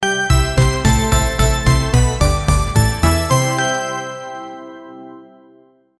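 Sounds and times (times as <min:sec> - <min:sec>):
synthesizer intro sound: 0:00.3 - 0:04.5.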